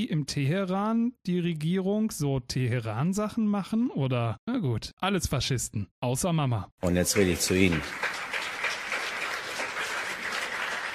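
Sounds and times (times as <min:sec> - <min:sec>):
speech: 0:00.0 - 0:08.2
audience applause: 0:06.8 - 0:10.9.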